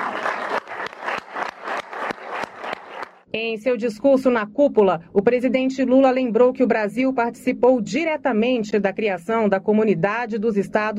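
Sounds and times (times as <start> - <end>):
audience applause: 0.0 - 3.2
speech: 3.3 - 10.9.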